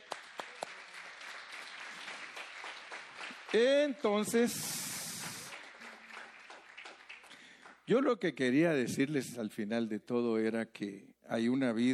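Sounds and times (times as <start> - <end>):
audience applauding: 0.0 - 7.9
speech: 3.5 - 4.8, 7.9 - 11.9.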